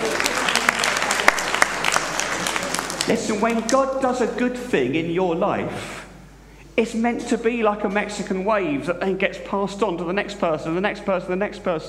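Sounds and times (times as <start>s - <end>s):
applause: 0.0s - 3.8s
speech: 3.1s - 6.0s, 6.8s - 11.8s.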